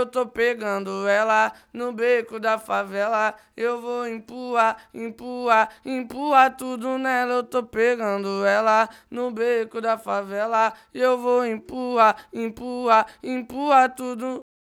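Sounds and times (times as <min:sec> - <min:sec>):
vocal at 130 BPM: 0:00.0 - 0:14.5.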